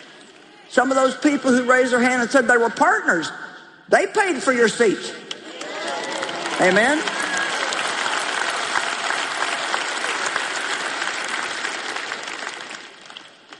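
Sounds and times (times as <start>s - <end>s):
speech: 0.7s - 5.2s, 6.6s - 7.2s
large audience clapping and cheering: 5.3s - 13.5s.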